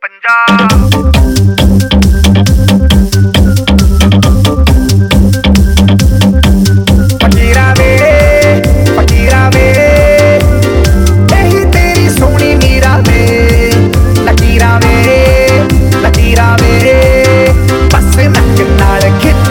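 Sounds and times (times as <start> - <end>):
ringtone: 0.5 - 19.4.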